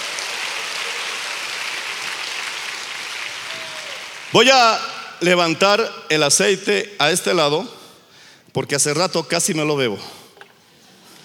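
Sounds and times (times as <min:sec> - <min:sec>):
audience applauding: 0:00.0 - 0:05.2
speech: 0:04.3 - 0:07.8, 0:08.5 - 0:10.2.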